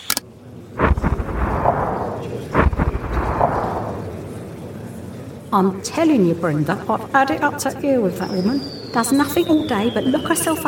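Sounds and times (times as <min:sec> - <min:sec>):
falling bombs exploding: 0:00.8 - 0:04.5
speech: 0:05.5 - 0:10.6.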